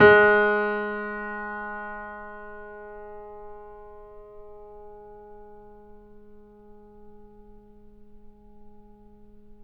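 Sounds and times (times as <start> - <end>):
grand piano G sharp 2 note played mezzo-piano: 0.0 - 6.2.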